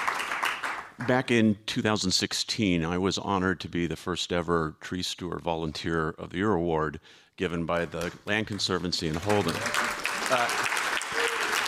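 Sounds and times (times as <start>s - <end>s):
audience clapping: 0.0s - 1.3s, 7.8s - 11.6s
speech: 1.0s - 10.7s.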